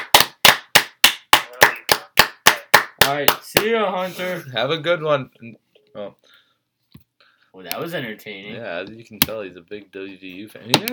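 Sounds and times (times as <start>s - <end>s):
people clapping: 0.0s - 3.8s
speech: 3.1s - 6.4s, 7.6s - 10.9s.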